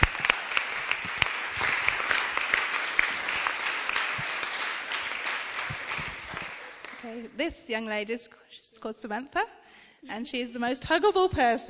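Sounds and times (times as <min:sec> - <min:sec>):
audience applause: 0:00.0 - 0:07.3
speech: 0:07.1 - 0:11.6.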